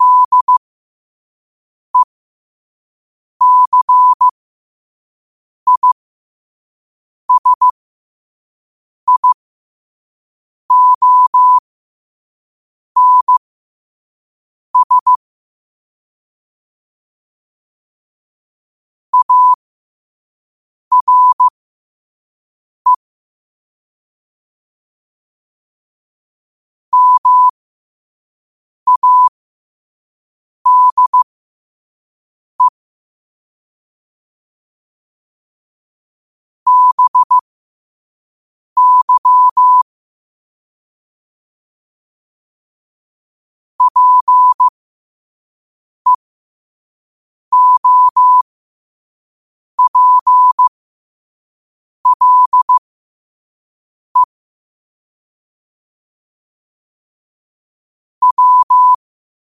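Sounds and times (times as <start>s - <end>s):
morse code at 5 wpm: 0.0s - 0.6s, 3.4s - 4.3s, 5.7s - 6.0s, 7.3s - 7.7s, 9.1s - 9.4s, 10.7s - 11.6s, 13.0s - 13.4s, 14.8s - 15.2s, 19.2s - 19.6s, 20.9s - 21.5s, 27.0s - 27.5s, 28.9s - 29.3s, 30.7s - 31.3s, 36.7s - 37.4s, 38.8s - 39.8s, 43.8s - 44.7s, 47.5s - 48.5s, 49.8s - 50.7s, 52.0s - 52.9s, 58.2s - 59.0s.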